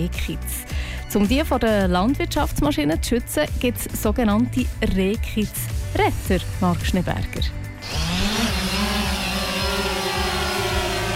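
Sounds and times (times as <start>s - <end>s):
speech: 0.0s - 8.0s
multicopter drones flying over fields: 7.8s - 11.1s.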